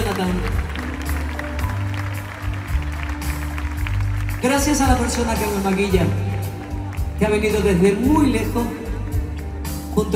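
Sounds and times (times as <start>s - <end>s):
audience applause: 0.0s - 7.6s
speech: 0.2s - 0.7s, 4.5s - 6.3s, 7.2s - 8.8s, 10.0s - 10.1s.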